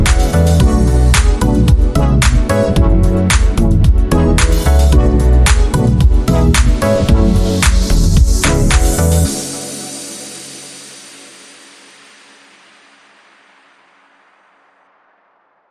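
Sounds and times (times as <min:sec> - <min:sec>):
roller disco music: 0:00.0 - 0:12.0.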